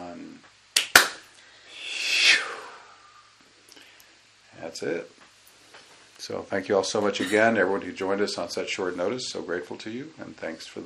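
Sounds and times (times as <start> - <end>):
group clapping together: 0.8 - 1.2
sharp claps: 0.8 - 1.3
speech: 4.8 - 5.2, 6.2 - 10.8.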